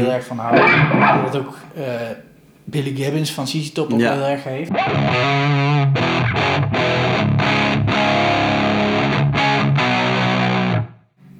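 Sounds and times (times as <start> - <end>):
speech: 0.0 - 7.0
electric guitar through fuzz pedal playing a riff: 0.5 - 1.8, 4.7 - 10.9.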